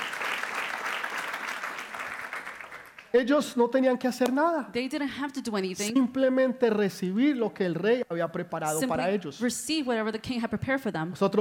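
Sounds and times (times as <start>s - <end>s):
large audience applause: 0.0s - 3.2s
speech: 3.1s - 11.3s.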